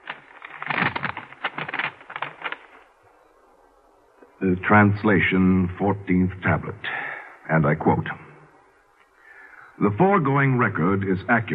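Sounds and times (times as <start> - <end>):
envelope being opened with paper crackling and tearing: 0.0 - 2.8
speech: 4.4 - 8.3, 9.8 - 11.5.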